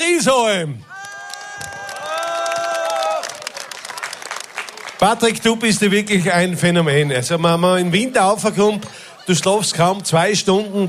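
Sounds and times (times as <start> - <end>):
crowd cheering: 0.0 - 10.8
speech: 0.1 - 1.0, 5.0 - 10.8
audience applause: 0.9 - 5.8.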